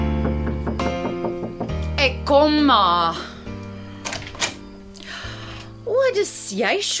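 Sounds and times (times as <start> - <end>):
knocking on kitchen door: 0.1 - 1.9
speech: 2.3 - 3.3, 6.0 - 6.9.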